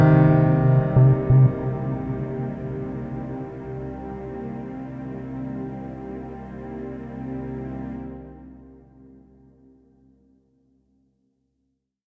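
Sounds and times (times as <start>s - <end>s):
sad piano: 0.0s - 8.5s.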